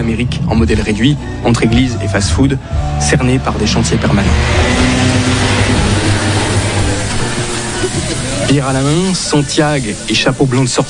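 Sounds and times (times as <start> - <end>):
speech: 0.0 - 5.4, 8.5 - 10.8
vehicle engines rumbling arriving at a US military base: 0.0 - 10.1.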